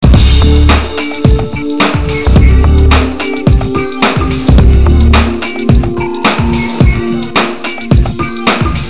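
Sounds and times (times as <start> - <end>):
depressing rock music: 0.0 - 8.8.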